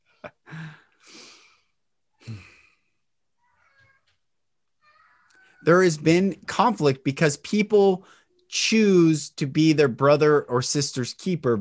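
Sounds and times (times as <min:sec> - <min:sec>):
person groaning: 0:02.2 - 0:02.6
speech: 0:05.6 - 0:11.5.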